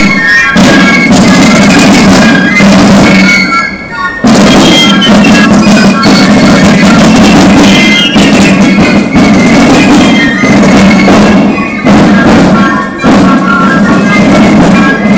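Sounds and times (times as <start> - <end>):
Basel Fasnacht drumming: 0.0 - 15.1
Basel Fasnacht fifes playing: 0.0 - 15.1.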